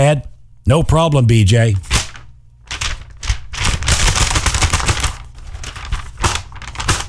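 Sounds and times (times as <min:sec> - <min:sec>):
speech: 0:00.0 - 0:01.9
sheet of paper rattled and shaken: 0:01.9 - 0:07.0.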